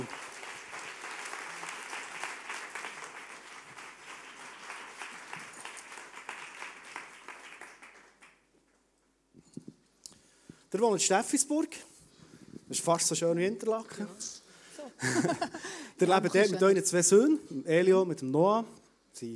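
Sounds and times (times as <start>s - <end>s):
audience applause: 0.0s - 8.5s
scattered claps: 0.0s - 8.8s
speech: 10.7s - 11.9s, 12.7s - 14.4s, 15.0s - 19.3s
laughter: 14.8s - 16.8s.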